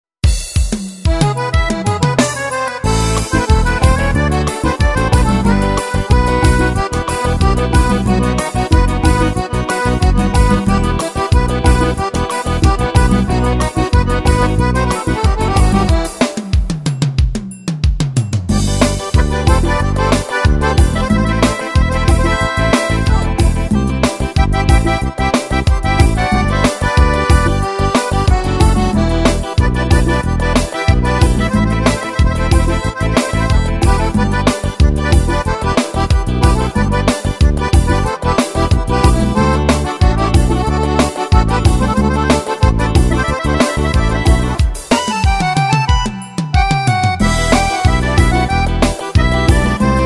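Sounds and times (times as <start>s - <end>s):
xote music: 0.2s - 50.0s.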